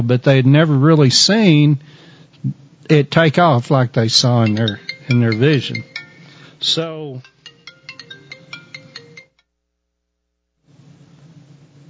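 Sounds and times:
speech: 0.0s - 5.9s, 6.6s - 7.3s
low steady hiss: 0.0s - 11.8s
mobile phone ringtone: 4.4s - 9.4s.

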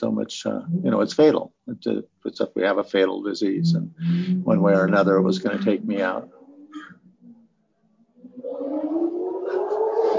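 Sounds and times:
speech: 0.0s - 6.9s
faint low rumbling: 0.0s - 10.1s
motorcycle engine roaring past, heard through closed windows: 3.6s - 7.4s, 8.2s - 10.1s.

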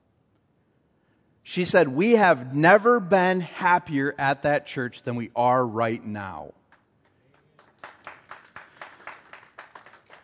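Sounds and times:
speech: 1.5s - 6.6s
audience applause: 7.4s - 10.2s.

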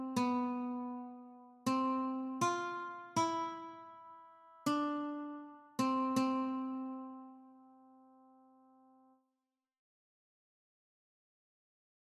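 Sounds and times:
guitar notes: 0.0s - 8.8s.

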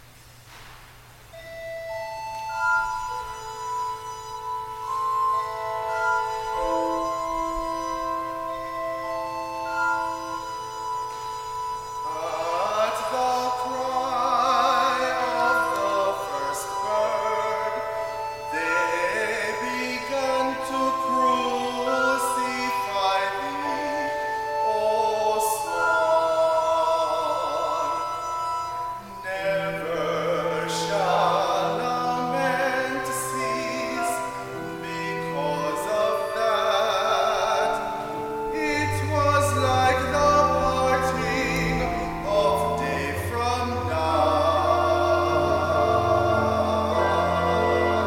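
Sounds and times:
offertory solo: 1.2s - 48.0s.

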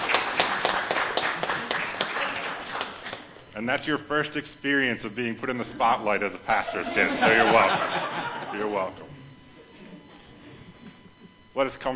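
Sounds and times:
audience applause: 0.0s - 3.2s
speech: 3.6s - 9.0s, 11.6s - 11.9s
laughter: 5.6s - 11.4s.

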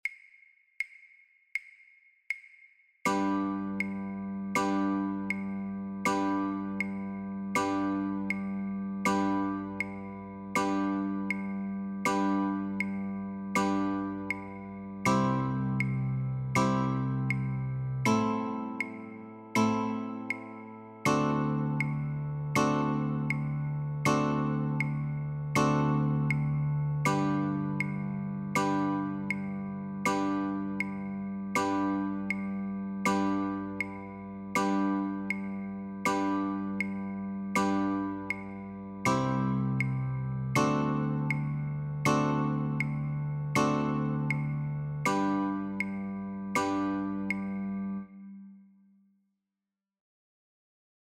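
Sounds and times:
guitar chords: 3.1s - 48.2s.

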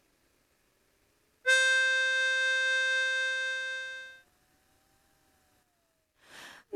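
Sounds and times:
lead melody: 1.5s - 4.2s.

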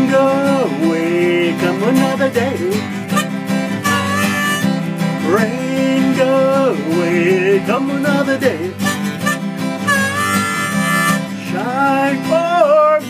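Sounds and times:
guitar: 0.0s - 13.0s
harmonica: 2.7s - 5.4s, 8.4s - 11.6s.

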